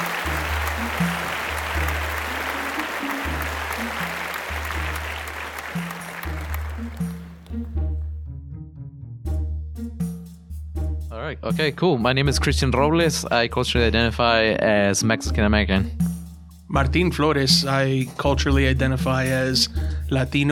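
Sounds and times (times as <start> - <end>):
crowd applause: 0.0 - 7.6
bass-heavy music bed with percussive hits: 0.0 - 20.5
speech: 11.4 - 16.1, 16.7 - 20.5.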